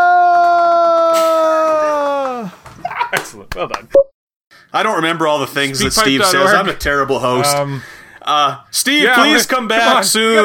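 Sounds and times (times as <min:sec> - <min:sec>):
person screaming while falling off an edge: 0:00.0 - 0:02.6
speech: 0:03.6 - 0:04.1, 0:04.7 - 0:10.4.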